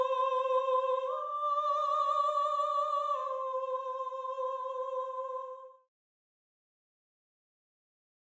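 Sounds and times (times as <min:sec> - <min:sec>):
soprano singing: 0:00.0 - 0:05.9.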